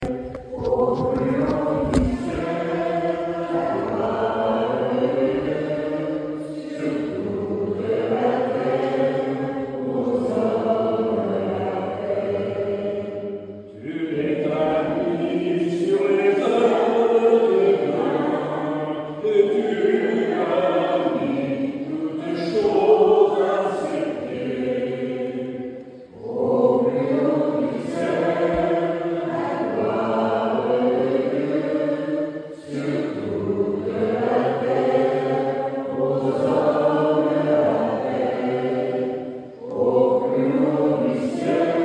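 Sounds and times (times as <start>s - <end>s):
choir singing: 0.0s - 41.8s.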